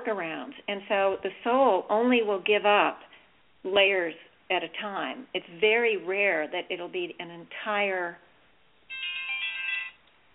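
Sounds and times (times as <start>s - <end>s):
speech: 0.0s - 8.2s
telephone ringtone chirp: 8.9s - 10.0s.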